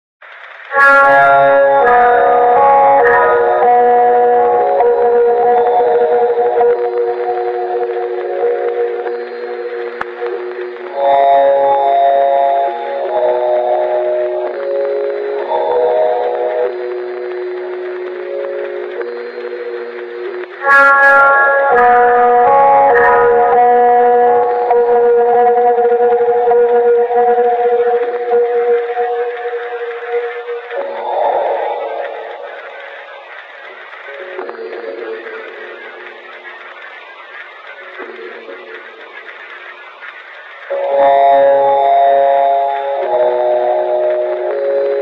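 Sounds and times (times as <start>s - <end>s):
low quality horror music: 0.2s - 45.0s.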